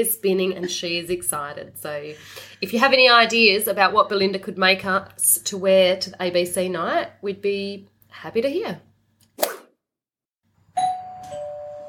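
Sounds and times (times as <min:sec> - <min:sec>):
speech: 0:00.0 - 0:08.9
short sharp click: 0:09.3 - 0:09.7
doorbell chiming: 0:10.8 - 0:11.8.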